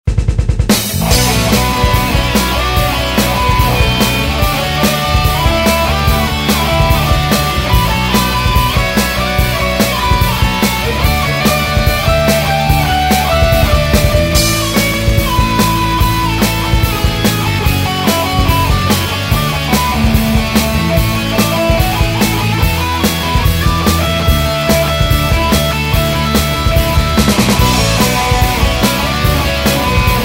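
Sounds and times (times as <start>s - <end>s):
instrumental music: 0.6s - 30.2s.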